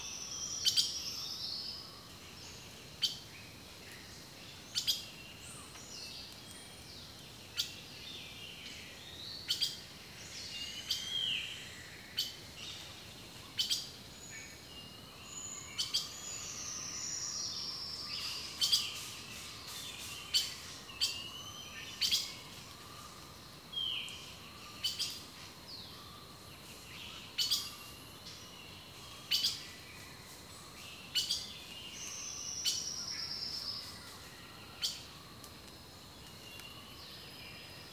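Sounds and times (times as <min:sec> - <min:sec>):
birdsong in a rainforest: 0:00.0 - 0:37.9.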